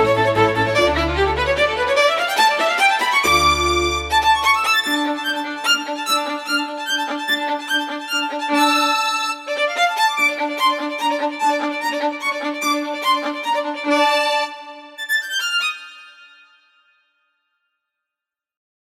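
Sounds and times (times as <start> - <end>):
harpsichord in orchestra playing presto: 0.0 - 6.5
solo violin in orchestra playing presto: 0.0 - 16.5.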